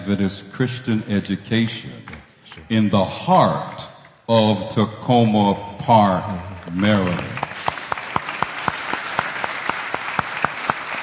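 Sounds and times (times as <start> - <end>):
speech: 0.1 - 7.3
audience applause: 6.6 - 11.0.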